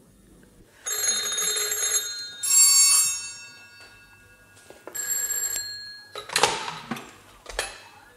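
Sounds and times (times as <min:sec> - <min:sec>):
telephone bells ringing: 0:00.8 - 0:06.6.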